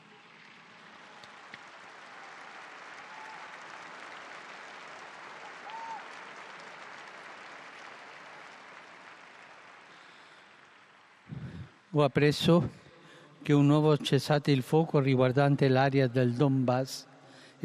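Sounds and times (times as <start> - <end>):
large crowd applause: 0.0 - 12.0
speech: 11.9 - 12.8, 13.5 - 17.6.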